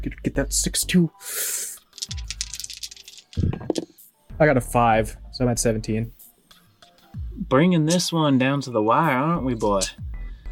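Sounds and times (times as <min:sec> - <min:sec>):
speech: 0:00.0 - 0:02.2, 0:03.4 - 0:03.8, 0:04.4 - 0:06.2, 0:07.4 - 0:10.0
dice being rolled: 0:01.8 - 0:03.9.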